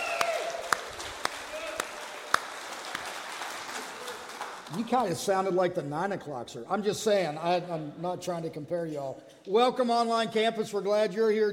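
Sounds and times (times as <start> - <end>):
faint voices or cheers: 0.0 - 0.8, 1.5 - 2.3
audience applause: 0.0 - 5.2
speech: 4.7 - 11.5.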